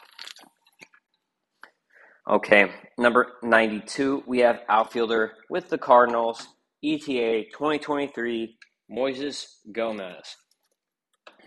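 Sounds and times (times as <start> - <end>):
person drinking water: 0.0 - 1.8
speech: 2.3 - 10.4.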